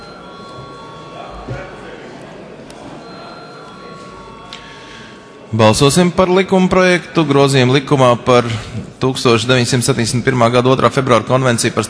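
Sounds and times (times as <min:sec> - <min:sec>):
parliamentary chamber electric bell ringing: 0:00.0 - 0:01.5, 0:03.0 - 0:05.2
murmur of voices: 0:00.0 - 0:11.8
speech: 0:05.5 - 0:11.8.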